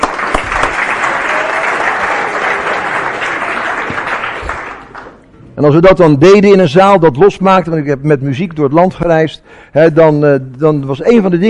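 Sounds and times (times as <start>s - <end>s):
audience applause: 0.0s - 5.2s
speech: 5.6s - 11.4s.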